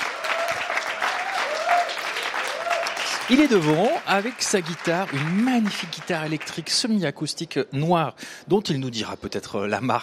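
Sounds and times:
audience applause: 0:00.0 - 0:06.8
speech: 0:03.3 - 0:10.0.

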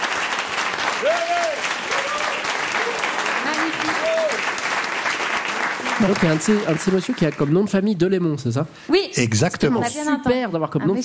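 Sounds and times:
audience applause: 0:00.0 - 0:08.0
voiced calls and whoops: 0:01.0 - 0:03.2
speech: 0:01.0 - 0:04.7, 0:06.0 - 0:11.0.

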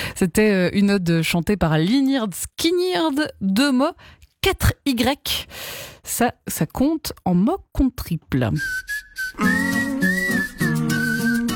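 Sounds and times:
speech: 0:00.2 - 0:09.8
thin breathy melody whistled through the nose or while inhaling: 0:08.6 - 0:11.5.

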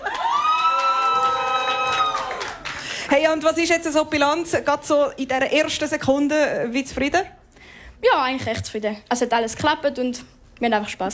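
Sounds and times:
audience cheering: 0:00.0 - 0:02.9
speech: 0:03.1 - 0:07.4, 0:08.0 - 0:11.1.

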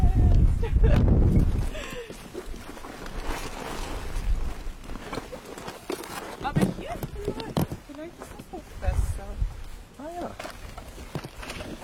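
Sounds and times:
wind buffeting an outdoor microphone: 0:00.0 - 0:04.8, 0:06.4 - 0:10.0.

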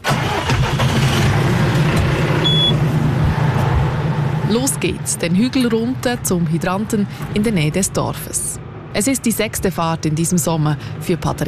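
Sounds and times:
tractor engine running: 0:00.0 - 0:07.8
speech: 0:04.5 - 0:11.4.

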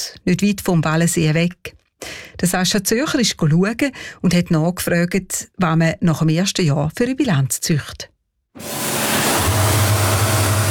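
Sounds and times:
speech: 0:00.2 - 0:08.9
high-pressure washer spraying a motorboat hull: 0:08.6 - 0:10.6.

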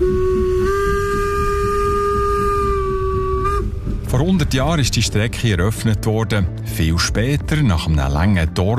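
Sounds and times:
steam locomotive whistle: 0:00.0 - 0:03.7
speech: 0:04.3 - 0:08.7.

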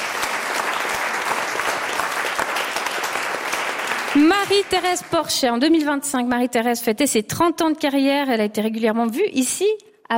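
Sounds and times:
crowd applause: 0:00.0 - 0:05.2
speech: 0:04.2 - 0:10.1.

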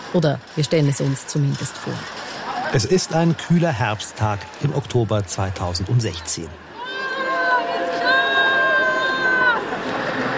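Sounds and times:
speech: 0:00.1 - 0:07.0
people cheering on a city square: 0:02.4 - 0:10.3.

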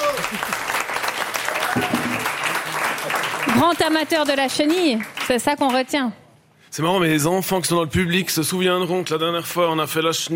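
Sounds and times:
audience applause: 0:00.0 - 0:05.4
speech: 0:03.6 - 0:10.3.

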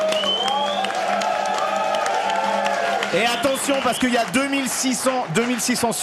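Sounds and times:
stadium crowd applauding a national anthem: 0:00.0 - 0:06.0
speech: 0:03.1 - 0:06.0.

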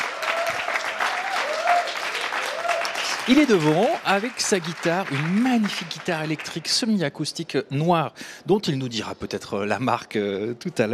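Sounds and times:
audience applause: 0:00.0 - 0:06.7
speech: 0:03.3 - 0:10.9.

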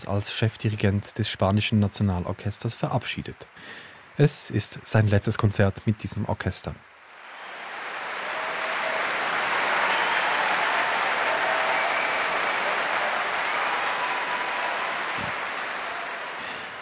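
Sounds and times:
speech: 0:00.0 - 0:06.9
concert audience applause in London: 0:07.0 - 0:16.8.

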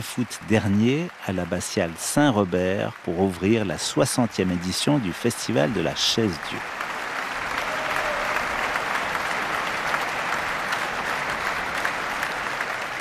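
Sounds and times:
speech: 0:00.0 - 0:06.8
audience applause and ovation after concert: 0:00.0 - 0:13.0.

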